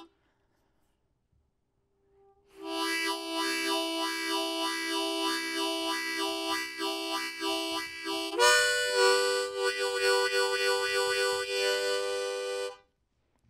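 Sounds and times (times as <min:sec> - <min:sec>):
harmonica: 0:02.6 - 0:12.9.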